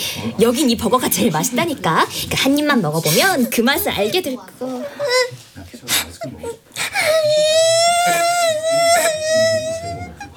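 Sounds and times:
speech: 0.2s - 8.3s
laughter: 4.8s - 10.3s
person wailing sobs: 6.9s - 10.3s.

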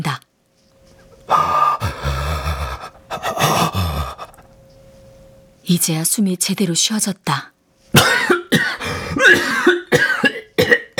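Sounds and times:
coughing fit: 1.0s - 4.5s, 8.0s - 10.9s
speech: 5.7s - 7.5s.

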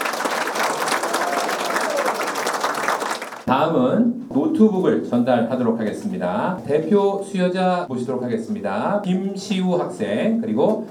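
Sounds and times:
cheering and applause: 0.0s - 3.5s
speech: 3.5s - 10.8s.

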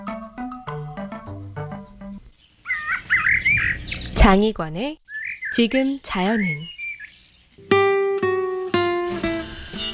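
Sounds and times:
Meimuna mongolica cicada singing in a midsummer forest: 2.4s - 4.2s, 5.0s - 9.9s
speech: 4.2s - 6.8s.

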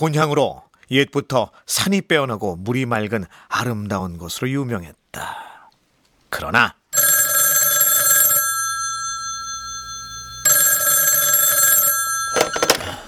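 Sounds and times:
speech: 0.0s - 5.5s, 6.3s - 6.8s
telephone ringing with an electronic trill: 7.0s - 13.0s.

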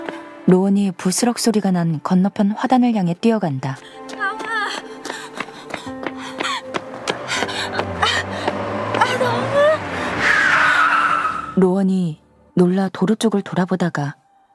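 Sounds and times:
speech: 0.5s - 4.0s, 11.8s - 14.2s
speeding car's tires squealing as it skids on a road: 6.9s - 11.6s.

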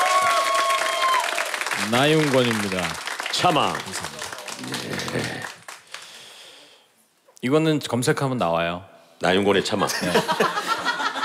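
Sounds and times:
audience applause: 0.0s - 6.5s
speech: 1.8s - 5.6s, 7.4s - 10.7s
laughter: 4.6s - 5.6s, 9.6s - 11.2s.

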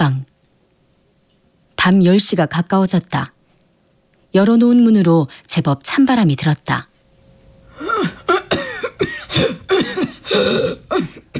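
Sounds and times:
speech: 1.8s - 3.4s, 4.3s - 6.9s
person coughing into a handkerchief: 7.8s - 11.3s.

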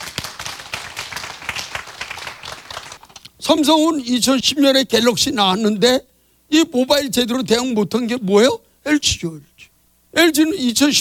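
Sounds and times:
audience clapping: 0.0s - 3.3s
speech: 3.5s - 9.5s, 10.1s - 11.0s.

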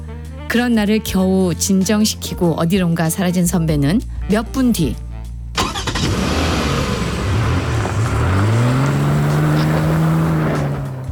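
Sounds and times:
speech: 0.5s - 5.1s
white car engine accelerating as it drives up: 5.6s - 11.1s.

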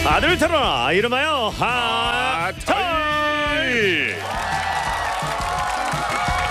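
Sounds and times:
speech: 0.2s - 2.9s
studio audience applause and cheering: 3.8s - 6.4s.

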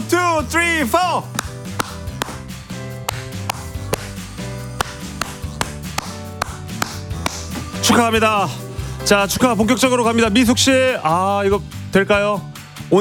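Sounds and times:
speech: 0.4s - 1.6s, 8.0s - 13.0s
rhythmic three-three-seven hand clapping: 1.2s - 7.9s.

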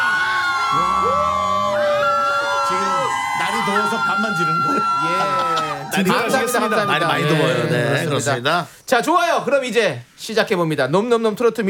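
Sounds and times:
crowd of fans outside a trot song contest cheering and screaming: 0.0s - 7.8s
speech: 3.7s - 11.6s.

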